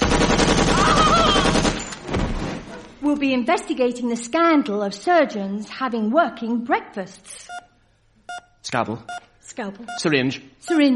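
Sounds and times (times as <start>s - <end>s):
submachine gun firing, comedy sketch sound effect: 0.0s - 2.5s
speech: 3.2s - 7.6s, 8.6s - 10.9s.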